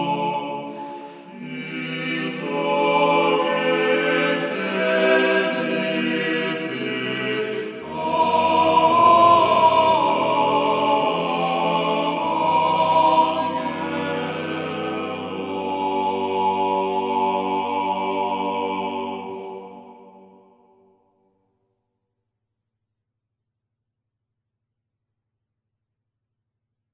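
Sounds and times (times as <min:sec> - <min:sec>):
church kliros choir singing a hymn of magnification: 0:00.0 - 0:20.8.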